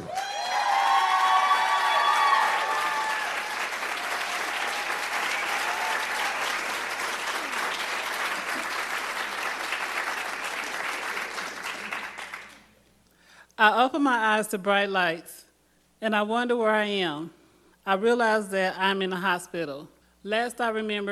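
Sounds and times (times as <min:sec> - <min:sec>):
audience whoops and cheers: 0:00.0 - 0:08.8
audience applause: 0:00.0 - 0:12.6
speech: 0:13.6 - 0:15.4, 0:16.0 - 0:21.1.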